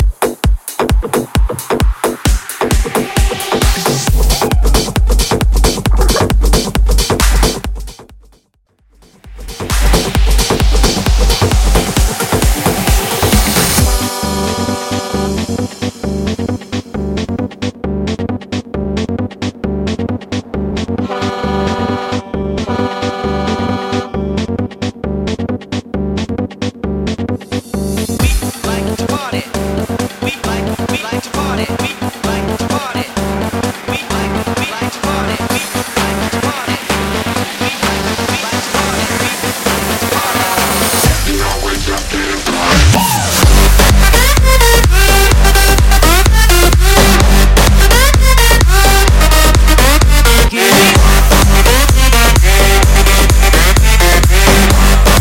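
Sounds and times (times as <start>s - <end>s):
90s bootleg club mash-up: 0.0s - 8.4s, 9.0s - 55.1s.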